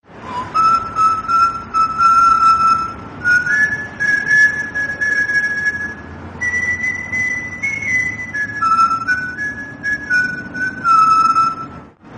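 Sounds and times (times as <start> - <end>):
whistle: 0.1 - 11.9.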